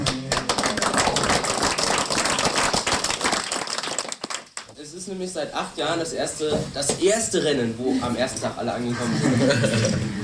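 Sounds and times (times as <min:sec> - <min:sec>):
crowd clapping: 0:00.0 - 0:04.8
speech: 0:05.1 - 0:10.2
laughter: 0:08.9 - 0:10.2.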